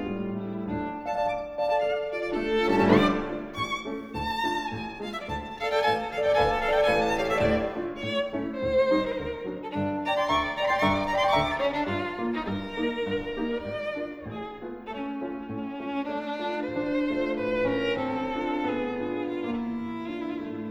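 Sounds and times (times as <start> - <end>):
violin and piano piece: 0.0 - 20.7.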